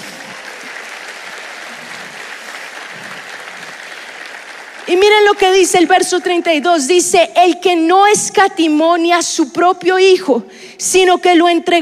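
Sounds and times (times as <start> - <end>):
applause: 0.0 - 6.8
speech: 4.9 - 11.8.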